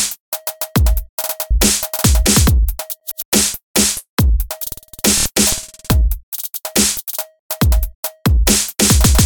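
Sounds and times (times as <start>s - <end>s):
glitch drum loop: 0.9s - 6.2s, 8.5s - 9.2s.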